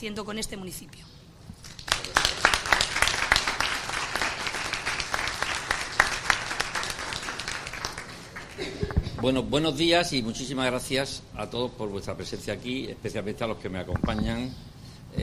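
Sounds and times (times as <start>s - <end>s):
speech: 0.0s - 1.2s, 8.6s - 15.2s
audience applause: 1.6s - 8.9s.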